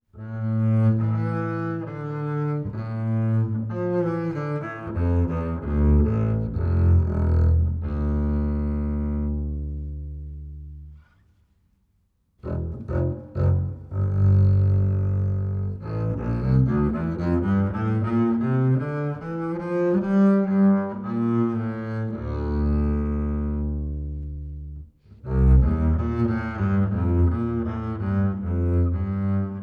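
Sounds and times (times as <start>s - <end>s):
bowed acoustic bass: 0.2s - 11.3s, 12.4s - 29.6s.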